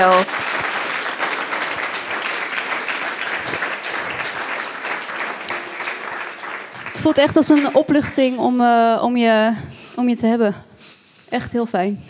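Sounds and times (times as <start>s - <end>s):
speech: 0.0s - 0.4s, 7.0s - 10.7s, 11.3s - 12.0s
audience applause: 0.0s - 8.3s.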